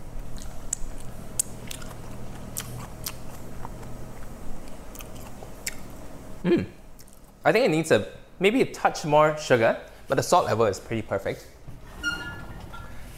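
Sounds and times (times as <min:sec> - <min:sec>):
biting and chewing seasoned radish: 0:00.2 - 0:05.9
speech: 0:06.4 - 0:06.8, 0:07.4 - 0:11.6.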